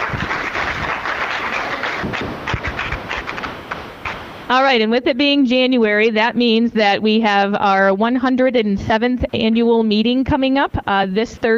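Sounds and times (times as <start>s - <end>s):
audience applause: 0.0s - 4.3s
speech: 4.5s - 11.5s.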